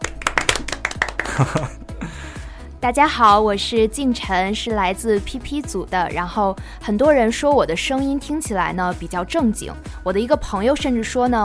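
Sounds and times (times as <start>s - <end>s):
small group clapping: 0.0s - 1.8s
faint voice or laugh: 1.2s - 1.8s
speech: 1.4s - 2.2s, 2.8s - 11.4s.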